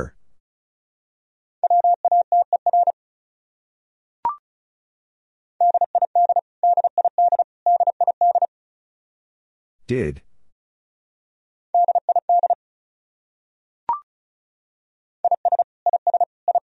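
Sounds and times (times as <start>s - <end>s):
Morse code beeps at 35 words per minute: 1.6s - 2.9s, 5.6s - 8.5s, 11.8s - 12.6s, 15.2s - 16.6s
speech: 9.9s - 10.3s.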